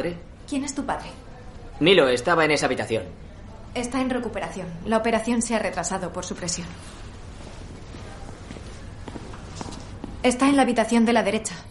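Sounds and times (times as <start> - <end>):
speech: 0.0 - 7.1, 10.2 - 11.6
slow footsteps walking down a hospital corridor: 6.7 - 10.6.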